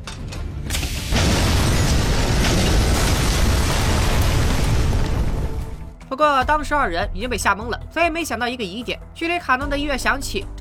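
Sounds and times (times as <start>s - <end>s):
bus bomb explosion: 0.7s - 6.0s
speech: 6.2s - 10.6s.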